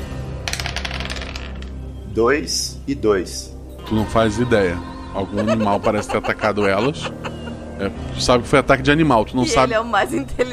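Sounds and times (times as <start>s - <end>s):
two dice clattering across a hard surface: 0.5s - 1.8s
speech: 2.2s - 10.5s
laughter: 3.9s - 8.0s.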